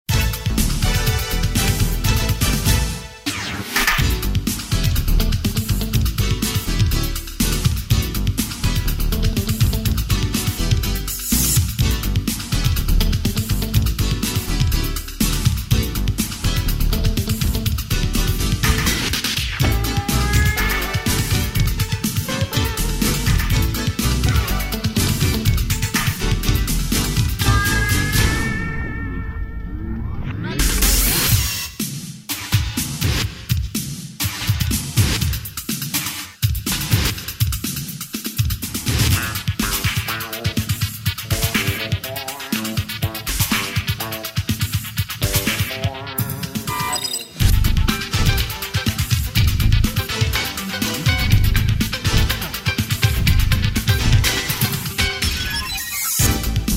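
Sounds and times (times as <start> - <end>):
funk music: 0.0 - 56.7.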